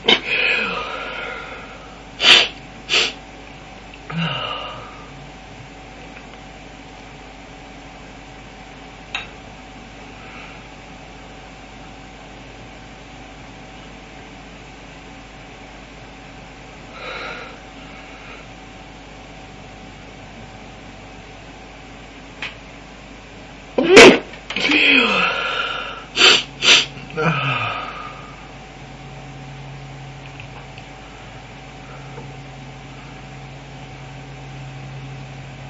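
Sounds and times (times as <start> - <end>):
man stifling a sound: 0.0 - 3.2, 4.1 - 5.1, 23.8 - 28.5.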